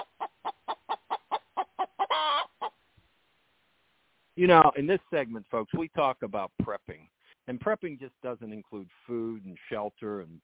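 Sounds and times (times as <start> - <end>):
chicken named Henrietta clucking: 0.0 - 2.8
speech: 4.4 - 10.4.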